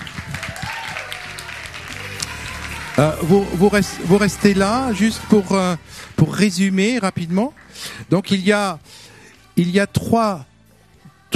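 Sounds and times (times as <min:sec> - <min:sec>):
audience applause: 0:00.0 - 0:06.1
speech: 0:03.0 - 0:09.0, 0:09.6 - 0:10.5.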